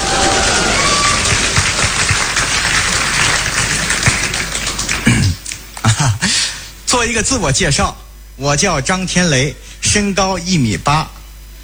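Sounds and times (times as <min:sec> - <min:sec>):
audience applause: 0:00.0 - 0:05.3
speech: 0:06.9 - 0:11.2.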